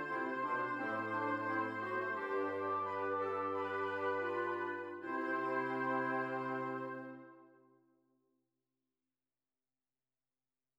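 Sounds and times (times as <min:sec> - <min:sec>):
double fugue in F major: 0:00.0 - 0:07.4.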